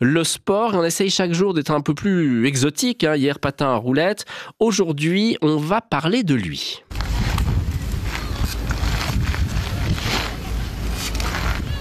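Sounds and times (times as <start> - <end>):
speech: 0.0 - 6.9
someone riding a unicycle back and forth: 6.9 - 11.7
uneven scuffs and clicks: 6.9 - 11.7.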